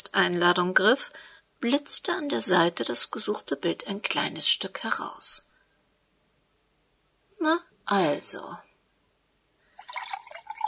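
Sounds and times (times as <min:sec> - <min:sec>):
speech: 0:00.2 - 0:05.5, 0:07.4 - 0:08.7
wine pouring into a glass: 0:09.8 - 0:10.6.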